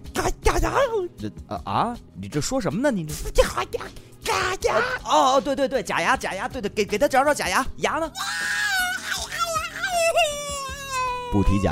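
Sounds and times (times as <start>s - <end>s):
speech: 0.2s - 8.6s, 11.3s - 11.6s
child crying: 4.3s - 5.1s, 8.1s - 11.6s.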